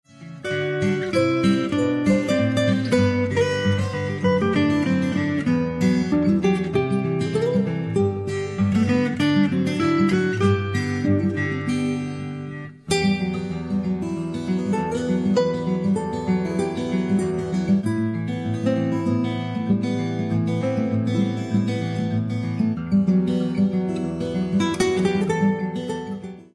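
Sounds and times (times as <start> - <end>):
acoustic guitar: 0.0 - 26.5.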